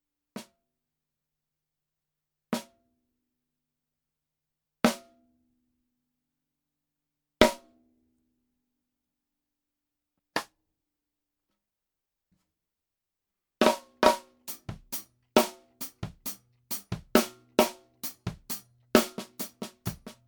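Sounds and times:
mid tom drum: 13.6s - 20.2s.

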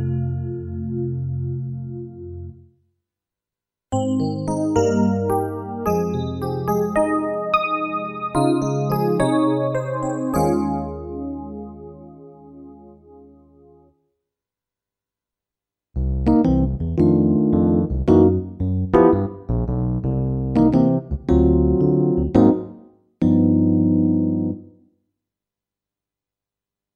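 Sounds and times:
electric piano: 0.0s - 2.6s, 4.0s - 13.8s, 16.2s - 24.7s.

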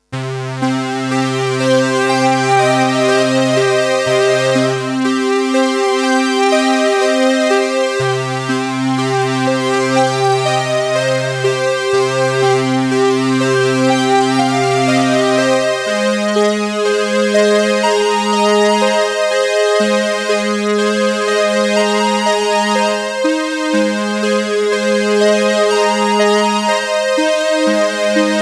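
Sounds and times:
Boss CE-300 chorus effect: 0.0s - 28.4s.

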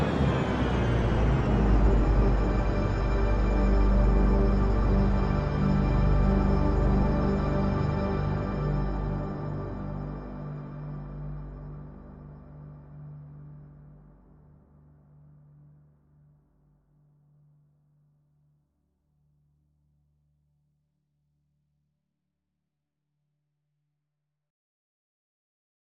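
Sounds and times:
workstation synth pad multi: 0.0s - 16.9s.

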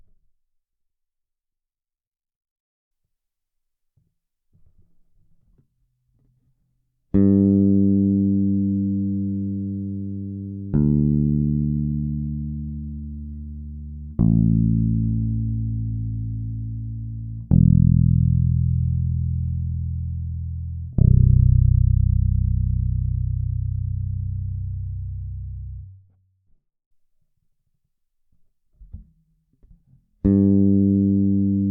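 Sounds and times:
bass guitar through a Phil Jones EQ: 7.1s - 26.1s, 28.8s - 31.6s.

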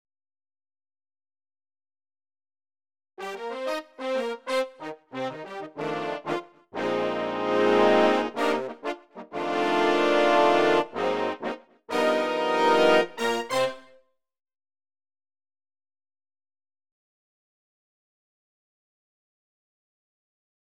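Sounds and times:
workstation brass: 3.2s - 14.0s.

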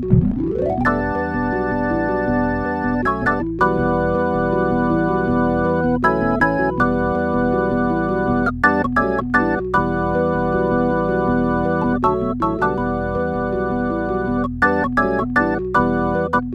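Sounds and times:
organ: 0.1s - 16.4s.

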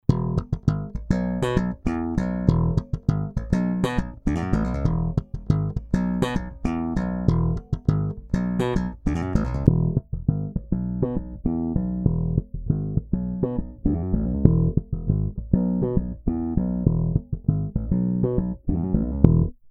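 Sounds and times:
funky Squier P Bass guitar: 0.0s - 19.6s.

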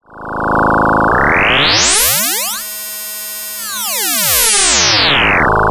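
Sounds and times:
E-RM Polygogo synthesizer fast OP ratio parameter sweep: 0.5s - 5.6s.

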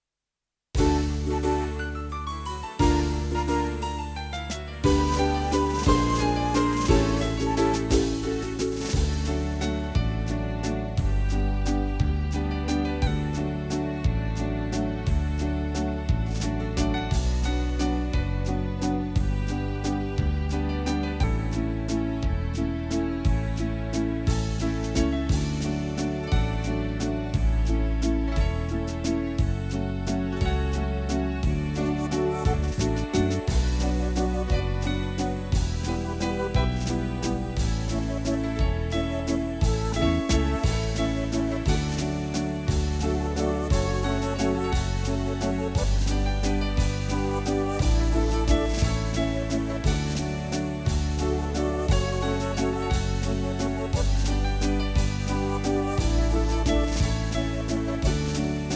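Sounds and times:
Korg Pa300 Viennese waltz style accompaniment: 0.8s - 58.7s.

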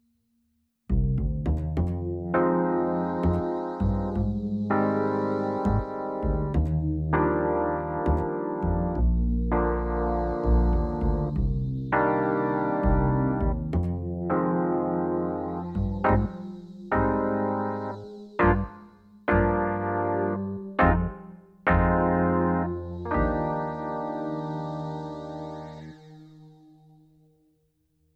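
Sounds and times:
distorted electric piano: 2.0s - 27.0s.

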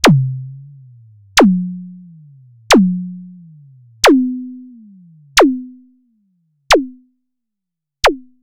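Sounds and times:
ACL System 1 filter zaps: 0.0s - 4.7s.

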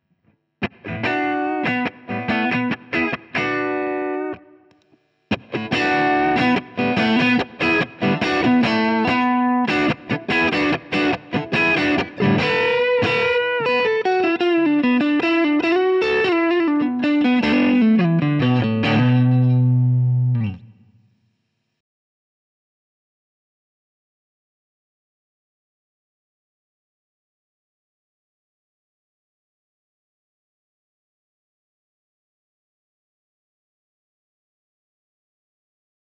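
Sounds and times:
boosted guitar: 0.6s - 4.6s, 5.3s - 21.0s.

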